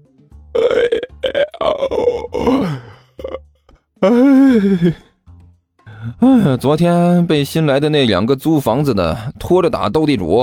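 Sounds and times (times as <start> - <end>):
speech: 0.6 - 2.8, 4.0 - 5.1, 6.2 - 10.4
big yawn: 0.6 - 3.4, 4.0 - 5.1.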